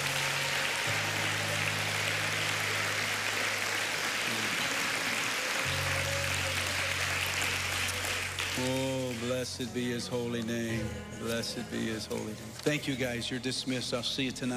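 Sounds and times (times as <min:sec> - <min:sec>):
audience clapping hands in praise: 0:00.0 - 0:09.7
speech: 0:08.6 - 0:14.5.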